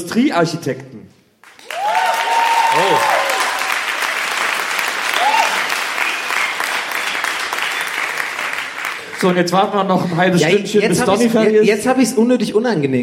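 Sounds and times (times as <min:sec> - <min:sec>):
speech: 0:00.0 - 0:01.0, 0:02.8 - 0:03.2, 0:09.2 - 0:13.0
live audience applause: 0:01.4 - 0:09.6.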